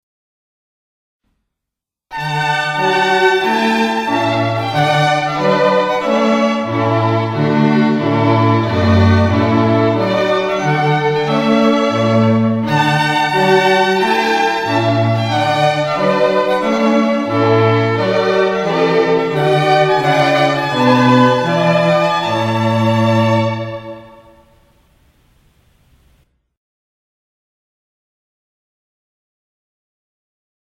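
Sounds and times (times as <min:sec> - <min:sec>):
trumpet piece: 0:02.1 - 0:24.7.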